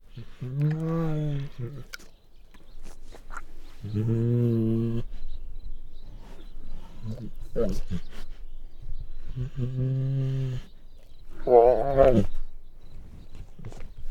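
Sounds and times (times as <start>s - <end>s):
male Bengal tiger growling and snarling: 0.0s - 12.6s.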